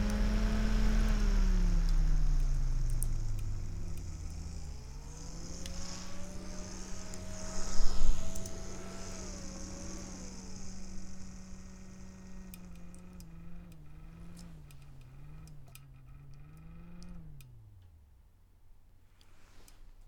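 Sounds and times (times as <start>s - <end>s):
fan noise: 0.0s - 20.0s.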